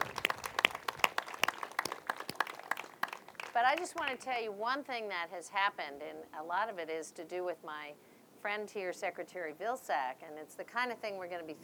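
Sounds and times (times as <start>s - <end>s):
audience applause: 0.0s - 4.2s
speech: 3.6s - 11.6s.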